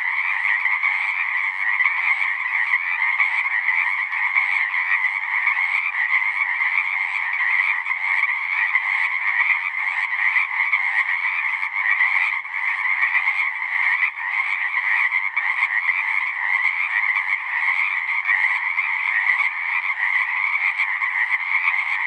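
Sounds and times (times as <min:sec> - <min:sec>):
Pacific chorus frogs calling in chorus: 0:00.0 - 0:22.0.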